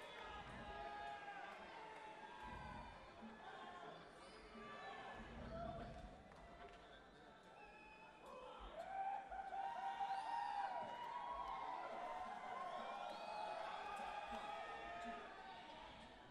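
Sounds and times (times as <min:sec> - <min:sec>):
crowd at a music theater in Rochester Michigan: 0:00.0 - 0:16.2.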